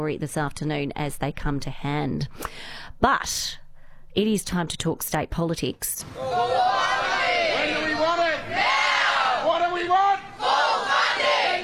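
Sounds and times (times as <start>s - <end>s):
speech: 0.0s - 3.6s, 4.2s - 6.9s
crowd of striking Victorian public school teachers and staff shouting at a protest: 6.0s - 11.6s.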